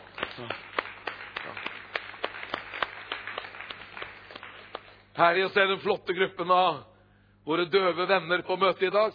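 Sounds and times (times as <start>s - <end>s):
audience clapping: 0.0s - 5.6s
speech: 0.4s - 0.7s, 5.2s - 9.1s.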